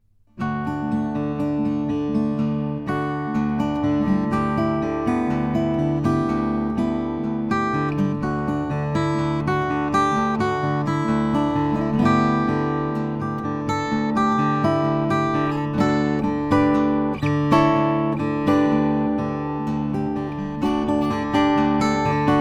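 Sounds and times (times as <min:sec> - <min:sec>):
Santa Cruz FS cutaway Indian rosewood acoustic guitar: 0:00.0 - 0:22.3.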